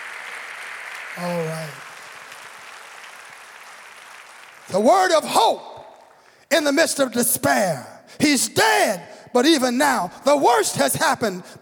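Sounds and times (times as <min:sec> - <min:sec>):
audience clapping hands: 0:00.0 - 0:06.2
speech: 0:01.2 - 0:01.9, 0:04.7 - 0:05.7, 0:06.5 - 0:11.5.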